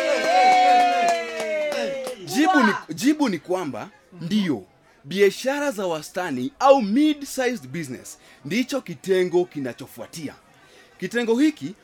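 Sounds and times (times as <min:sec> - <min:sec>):
audience applause for a question at a talk on mid-sized business: 0:00.0 - 0:02.7
speech: 0:02.5 - 0:10.4, 0:11.0 - 0:11.8.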